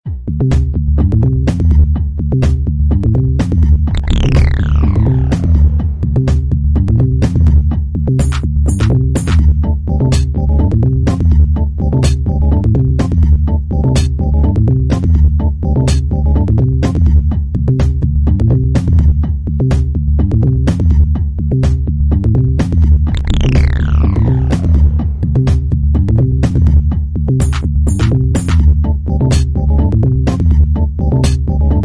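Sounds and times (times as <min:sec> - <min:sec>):
bass music: 0:00.0 - 0:31.8.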